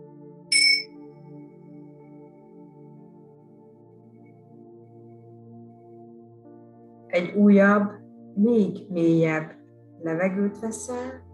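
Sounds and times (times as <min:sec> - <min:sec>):
bell chime: 0:00.5 - 0:00.9
speech: 0:07.1 - 0:11.2.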